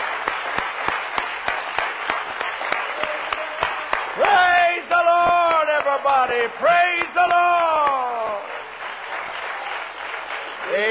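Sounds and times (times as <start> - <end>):
audience clapping in rhythm: 0.0 - 10.8
scattered applause: 0.0 - 10.8
speech: 6.0 - 8.5.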